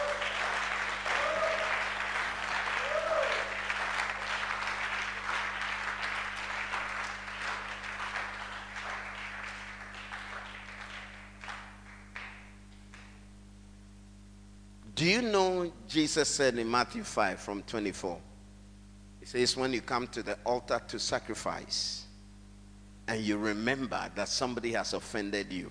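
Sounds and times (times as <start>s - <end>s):
audience clapping: 0.0s - 13.3s
low steady hum: 0.0s - 25.6s
speech: 15.0s - 18.3s, 19.3s - 22.0s, 23.1s - 25.6s.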